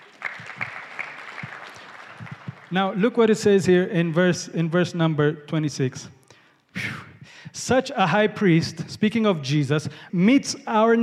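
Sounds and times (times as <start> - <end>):
audience clapping: 0.0 - 3.4
speech: 2.7 - 6.2, 7.7 - 11.0.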